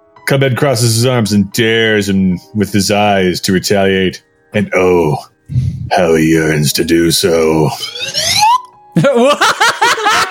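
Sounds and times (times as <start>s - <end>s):
speech: 0.2s - 8.4s, 9.0s - 10.2s
slide whistle: 7.8s - 8.7s
laughter: 9.0s - 10.2s.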